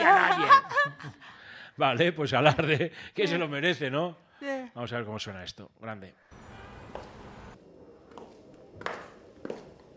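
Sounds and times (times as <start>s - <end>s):
speech: 1.8s - 6.3s
high-heeled footsteps of a downstairs neighbour walking around her flat: 6.9s - 7.2s, 8.0s - 9.9s.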